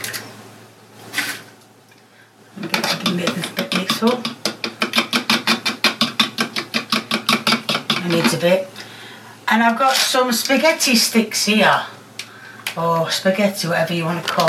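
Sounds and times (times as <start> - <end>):
eggs being beaten in a bowl: 2.6 - 8.5
speech: 3.1 - 4.2, 8.4 - 8.8, 9.5 - 12.0, 12.8 - 14.4.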